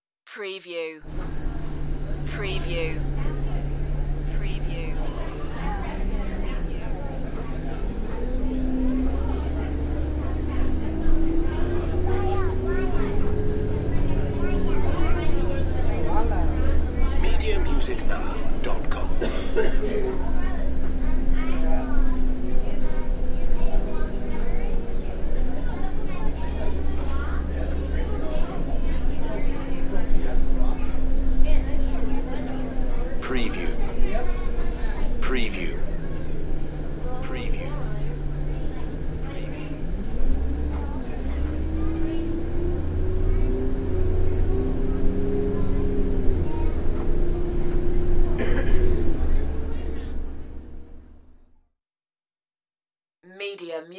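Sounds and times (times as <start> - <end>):
bus interior noise: 1.0 - 51.5.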